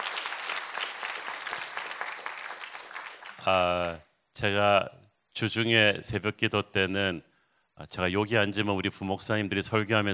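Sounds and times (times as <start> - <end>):
audience applause: 0.0 - 3.9
speech: 3.4 - 10.1.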